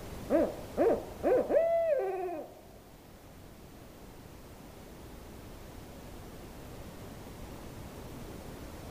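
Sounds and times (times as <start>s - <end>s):
owl hooting: 0.3s - 2.6s.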